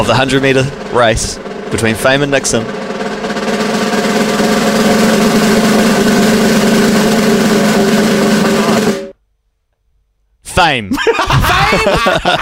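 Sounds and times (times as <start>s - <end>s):
speech: 0.0s - 3.0s, 10.6s - 12.4s
long drum roll: 0.0s - 9.2s
laughter: 10.9s - 12.4s.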